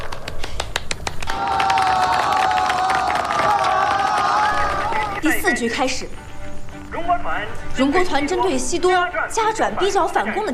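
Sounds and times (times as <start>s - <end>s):
crowd applauding and cheering: 0.0s - 5.4s
speech: 5.6s - 6.3s, 7.3s - 10.5s.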